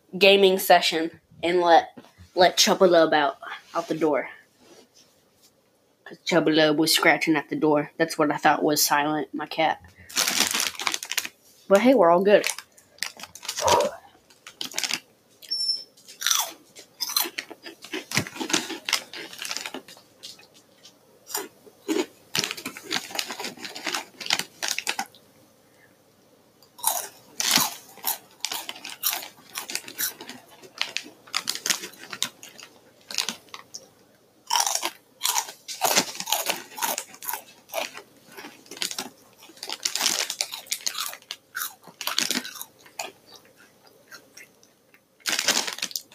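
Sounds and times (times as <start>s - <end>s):
speech: 0.1s - 4.4s, 6.1s - 10.4s, 11.7s - 12.6s
crunching on hot Cheetos: 10.0s - 11.4s, 12.4s - 15.1s, 16.1s - 25.2s, 26.7s - 33.8s, 34.5s - 46.1s.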